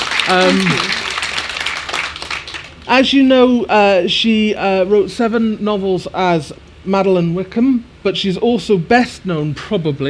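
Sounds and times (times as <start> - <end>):
audience applause: 0.0 - 2.8
speech: 0.3 - 0.9, 2.9 - 10.0.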